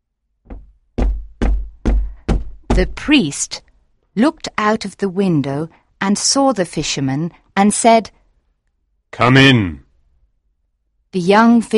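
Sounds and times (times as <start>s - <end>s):
knocking on a door: 0.4s - 3.1s
speech: 2.8s - 3.6s, 4.2s - 8.2s, 9.1s - 9.8s, 11.1s - 11.7s.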